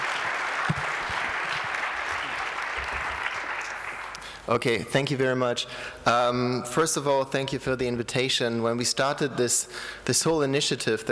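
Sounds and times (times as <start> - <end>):
audience applause: 0.0 - 4.4
speech: 4.5 - 11.1.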